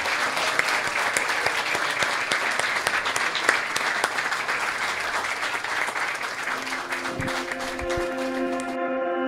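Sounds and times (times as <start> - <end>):
audience applause: 0.0 - 8.8.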